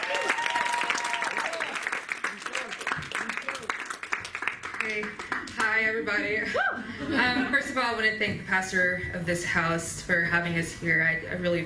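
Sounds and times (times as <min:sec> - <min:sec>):
audience applause welcoming a speaker at a church gathering: 0:00.0 - 0:05.8
speech: 0:05.0 - 0:11.6.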